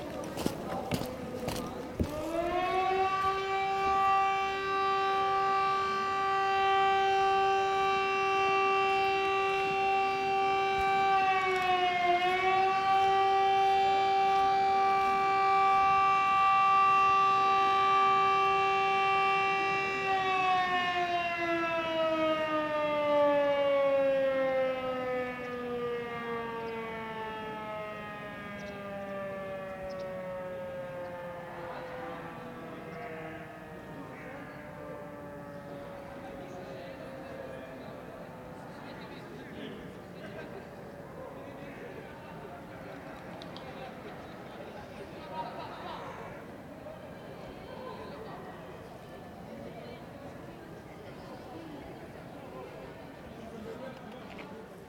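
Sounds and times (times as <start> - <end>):
fire engine siren: 0.4 - 38.8
laughter: 40.0 - 41.0, 43.6 - 46.6.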